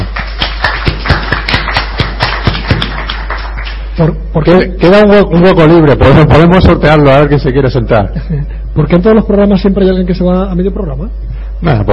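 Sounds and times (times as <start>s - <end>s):
applause: 0.0s - 4.0s
speech: 4.0s - 11.9s.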